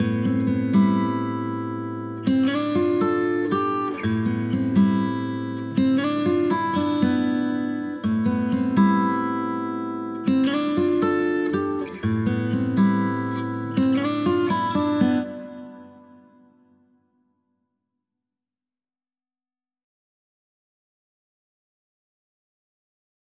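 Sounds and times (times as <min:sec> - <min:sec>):
acoustic guitar: 0:00.0 - 0:17.0.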